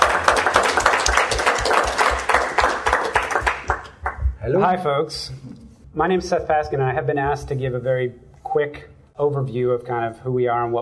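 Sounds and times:
audience applause: 0.0 - 4.3
speech: 4.6 - 10.8.

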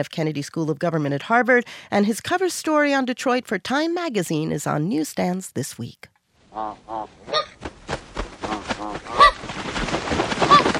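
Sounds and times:
speech: 0.0 - 7.6
migratory birds honking in a nature documentary: 6.5 - 7.6, 8.4 - 9.5, 10.4 - 10.7.

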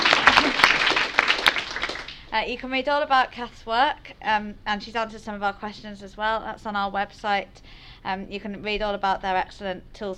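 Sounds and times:
audience round of applause: 0.0 - 2.2
speech: 2.3 - 10.1.

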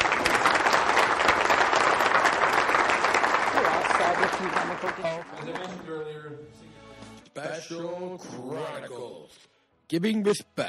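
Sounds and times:
audience applause: 0.0 - 5.9
speech: 7.4 - 10.6.

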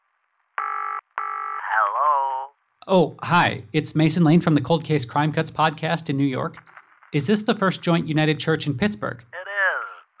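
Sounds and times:
telephone ringing: 0.6 - 1.6
speech: 2.9 - 9.4.

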